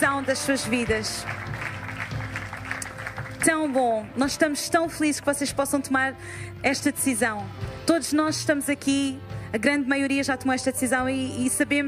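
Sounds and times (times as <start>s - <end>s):
speech: 0.0s - 1.5s, 3.4s - 11.8s
crowd applause: 0.1s - 4.0s.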